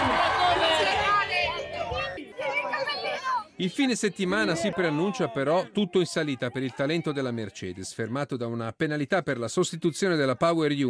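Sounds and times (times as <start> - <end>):
fans applauding: 0.0 - 1.2
fans cheering: 0.0 - 7.4
speech: 3.6 - 10.8.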